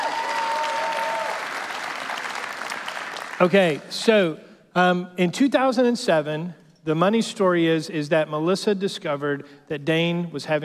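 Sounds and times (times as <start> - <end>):
audience applause: 0.0 - 3.8
speech: 3.4 - 10.6.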